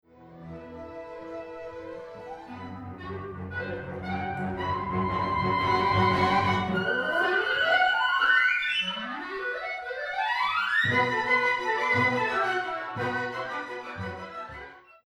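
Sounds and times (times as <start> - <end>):
clarinet: 0.1 - 15.0.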